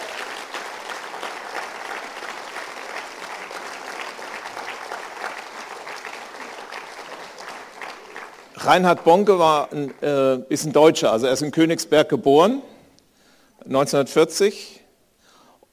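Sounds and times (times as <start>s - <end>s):
audience clapping: 0.0s - 10.7s
speech: 8.6s - 12.7s, 13.7s - 14.8s.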